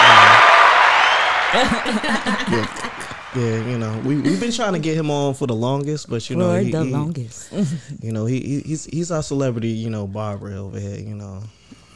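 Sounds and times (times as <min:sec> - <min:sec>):
applause: 0:00.0 - 0:04.4
laughter: 0:01.3 - 0:05.0, 0:06.4 - 0:07.0
speech: 0:01.5 - 0:11.6.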